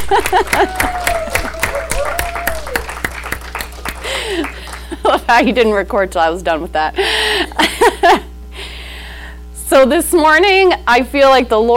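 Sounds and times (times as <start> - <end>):
audience clapping: 0.0 - 5.1
laughter: 0.0 - 5.7, 7.5 - 8.3
speech: 0.1 - 0.8, 5.3 - 8.2, 9.8 - 11.7.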